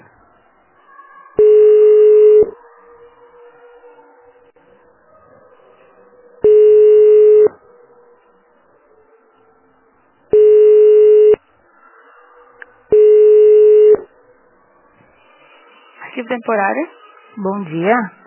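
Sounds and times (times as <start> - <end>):
telephone ringing tones during transfer to office extension: 1.4 - 2.5, 6.5 - 7.5, 10.3 - 11.4, 12.9 - 14.1
speech: 16.4 - 18.2.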